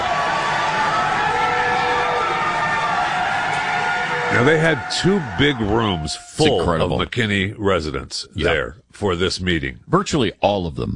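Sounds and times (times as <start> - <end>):
meeting crowd reacting with roar of voices: 0.0 - 6.8
speech: 4.3 - 10.9.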